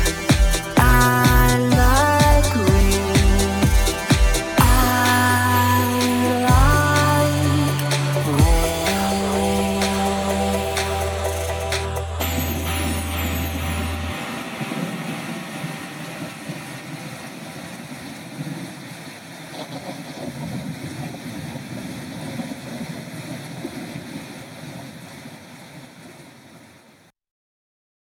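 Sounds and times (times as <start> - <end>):
vocal house dance mix at 126 bpm: 0.0 - 17.4.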